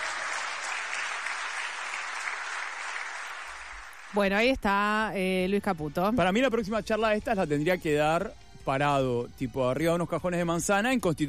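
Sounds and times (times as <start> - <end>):
audience applause: 0.0 - 4.3
speech: 4.1 - 11.2.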